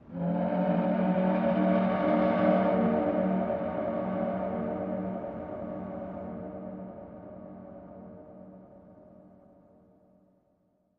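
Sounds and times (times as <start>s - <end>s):
long train fog horn: 0.1s - 6.3s.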